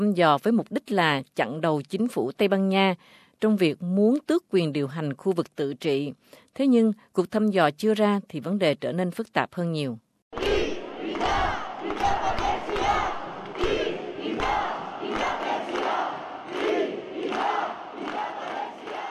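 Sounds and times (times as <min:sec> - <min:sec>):
speech: 0:00.0 - 0:10.5
protesters demanding independence for Catalonia chanting in unison: 0:10.3 - 0:19.0.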